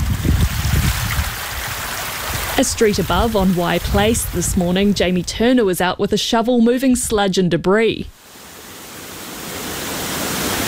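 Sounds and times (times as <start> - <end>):
floodwater gushing down a bank behind a house: 0.0 - 5.3, 8.2 - 10.6
speech: 2.6 - 8.2.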